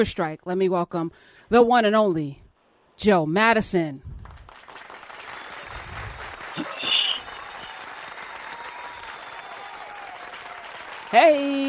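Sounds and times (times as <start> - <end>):
speech: 0.0 - 2.4, 3.0 - 4.2, 11.1 - 11.6
audience applause: 4.3 - 11.6.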